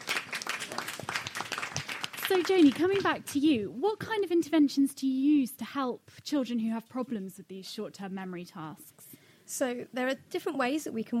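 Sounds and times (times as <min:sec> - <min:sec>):
audience applause: 0:00.0 - 0:03.1
speech: 0:02.3 - 0:08.9, 0:09.5 - 0:11.1.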